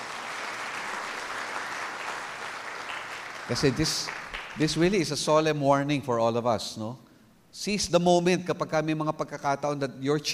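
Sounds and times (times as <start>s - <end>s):
audience applause: 0.0s - 5.0s
speech: 3.5s - 7.0s, 7.6s - 10.3s.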